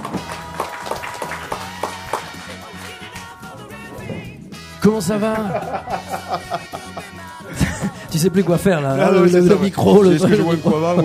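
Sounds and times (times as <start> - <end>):
audience applause: 0.0 - 3.3
speech: 4.8 - 6.8, 8.1 - 11.0
laughter: 5.2 - 8.3, 9.2 - 11.0.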